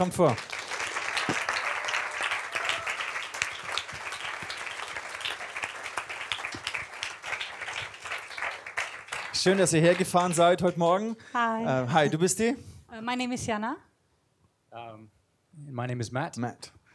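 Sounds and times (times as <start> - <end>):
speech: 0.0 - 0.5, 9.4 - 13.9, 14.7 - 16.8
audience applause welcoming a team on stage: 0.0 - 10.8.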